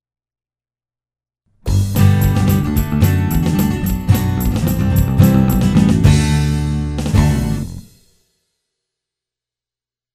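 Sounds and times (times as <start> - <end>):
one-man band playing a cover: 1.7 - 8.0.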